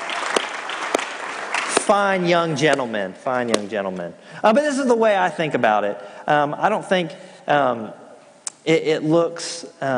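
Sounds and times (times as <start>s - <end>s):
round of applause: 0.0s - 2.0s
speech: 1.9s - 8.0s, 8.6s - 9.9s.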